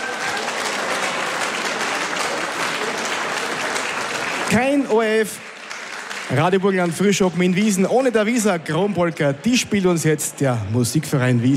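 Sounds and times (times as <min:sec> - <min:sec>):
audience applause: 0:00.0 - 0:08.5
speech: 0:04.5 - 0:05.5, 0:06.3 - 0:11.5.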